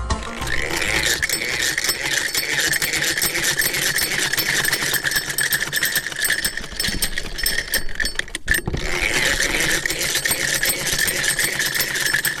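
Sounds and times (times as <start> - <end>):
sewing machine run by a woman tailor at home: 0.2 - 12.3.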